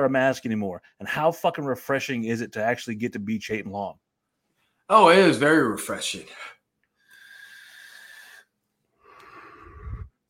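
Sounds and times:
speech: 0.0 - 4.0, 4.9 - 6.6
person inhaling from a vape: 7.0 - 10.2.

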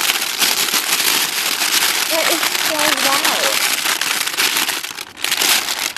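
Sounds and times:
crunching potato chips: 0.0 - 5.9.

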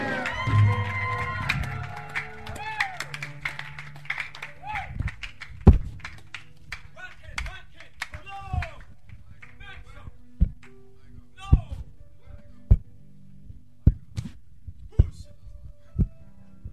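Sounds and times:
crowd clapping: 0.0 - 10.0.

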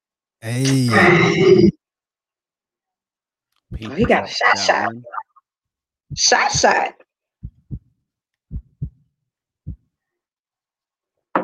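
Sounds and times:
speech: 0.4 - 1.8, 3.8 - 5.2, 6.1 - 7.0
heartbeat: 3.7 - 4.2, 6.1 - 6.8, 7.4 - 9.0, 9.6 - 9.9.

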